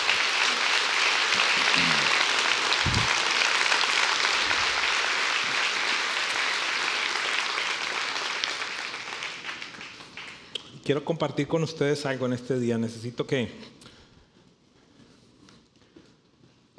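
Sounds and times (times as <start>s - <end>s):
applause: 0.0s - 10.6s
speech: 10.9s - 13.8s.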